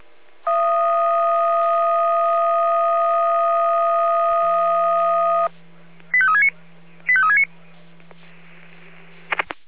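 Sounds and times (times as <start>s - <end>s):
low hum: 0.2s - 9.5s
fire brigade radio alarm call tones: 0.5s - 5.5s.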